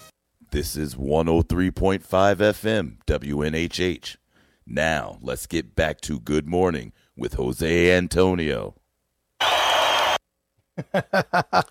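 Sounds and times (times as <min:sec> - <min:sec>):
speech: 0:00.5 - 0:08.8, 0:10.8 - 0:11.6
crowd roaring and applauding sound effect: 0:09.4 - 0:10.2
laughter: 0:10.8 - 0:11.6.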